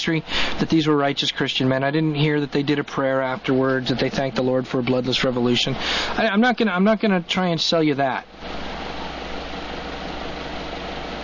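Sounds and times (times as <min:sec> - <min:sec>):
speech: 0:00.0 - 0:08.7
electric fan humming: 0:00.0 - 0:11.2.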